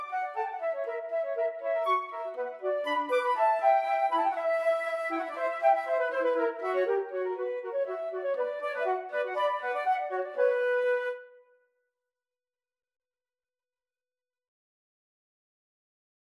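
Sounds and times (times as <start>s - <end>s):
flutes playing: 0.0s - 11.4s.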